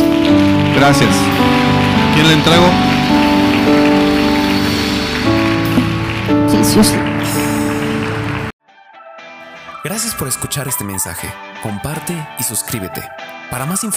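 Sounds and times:
crowd applause: 0:00.0 - 0:08.5
sustained musical tones: 0:00.0 - 0:08.5
speech: 0:00.8 - 0:01.6, 0:02.2 - 0:02.9, 0:03.7 - 0:03.9, 0:06.6 - 0:07.1, 0:09.8 - 0:13.9.

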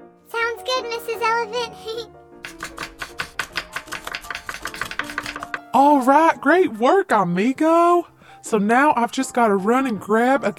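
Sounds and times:
speech: 0:00.7 - 0:02.2, 0:05.8 - 0:10.5
knife chopping carrots and potatoes on a cutting board: 0:02.4 - 0:05.7.

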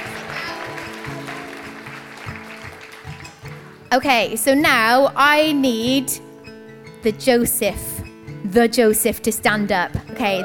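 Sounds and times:
audience applause: 0:00.0 - 0:03.8
speech: 0:03.9 - 0:06.2, 0:07.0 - 0:07.9, 0:08.5 - 0:10.4.

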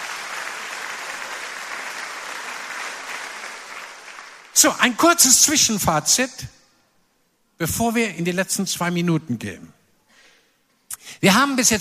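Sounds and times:
audience applause: 0:00.0 - 0:04.6
speech: 0:04.6 - 0:06.6, 0:07.6 - 0:09.8, 0:11.1 - 0:11.7.

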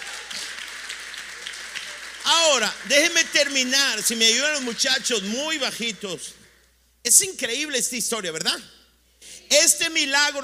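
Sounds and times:
audience applause: 0:00.0 - 0:05.7
speech: 0:02.4 - 0:06.4, 0:07.0 - 0:08.8, 0:09.5 - 0:10.4.

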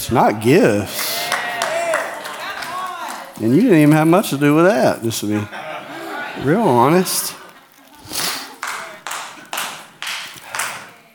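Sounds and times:
speech: 0:00.0 - 0:01.0, 0:03.4 - 0:05.7, 0:06.4 - 0:07.4
loud hand clapping: 0:00.9 - 0:03.7, 0:08.1 - 0:11.0
laughter: 0:01.2 - 0:10.6.

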